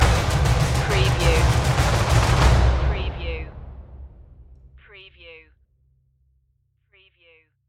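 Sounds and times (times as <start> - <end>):
percussion stinger: 0.0 - 4.8.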